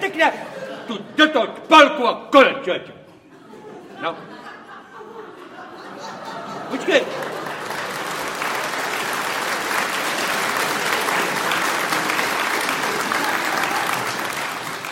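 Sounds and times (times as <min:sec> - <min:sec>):
laughter: 0:00.0 - 0:01.6, 0:03.1 - 0:14.9
speech: 0:00.2 - 0:03.0, 0:04.0 - 0:04.4, 0:06.7 - 0:07.4
audience applause: 0:06.2 - 0:14.9.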